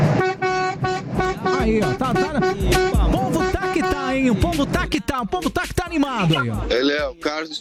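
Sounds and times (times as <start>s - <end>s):
car horns honking: 0.2s - 4.9s
speech: 4.3s - 7.5s.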